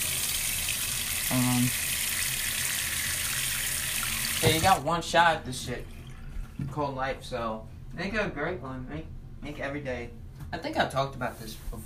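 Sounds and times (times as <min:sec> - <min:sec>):
tap water running while something is washed: 0:00.0 - 0:04.9, 0:05.6 - 0:06.8
speech: 0:01.3 - 0:01.9, 0:04.4 - 0:06.0, 0:06.6 - 0:11.8.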